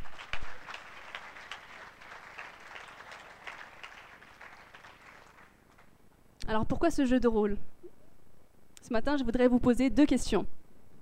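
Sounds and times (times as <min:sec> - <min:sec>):
audience applause: 0:00.0 - 0:05.9
speech: 0:06.5 - 0:07.7, 0:08.9 - 0:10.6.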